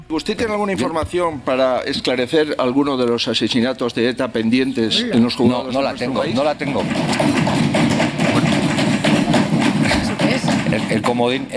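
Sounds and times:
speech: 0.1 - 8.0, 10.9 - 11.5
people banging on the table: 5.2 - 11.5.

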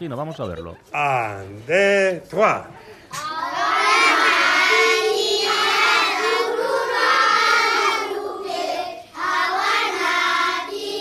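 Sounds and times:
speech: 0.0 - 3.3
large group of primary school children chanting in loud chorus: 3.2 - 11.0.

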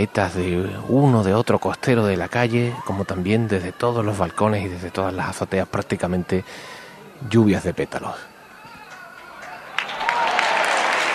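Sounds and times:
speech: 0.0 - 8.3
applause from street crowd: 8.8 - 11.1.

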